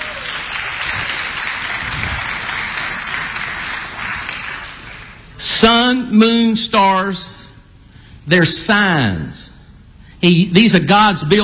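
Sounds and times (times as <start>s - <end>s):
audience clapping in praise: 0.0s - 5.3s
speech: 5.6s - 7.4s, 8.3s - 9.5s, 10.2s - 11.4s.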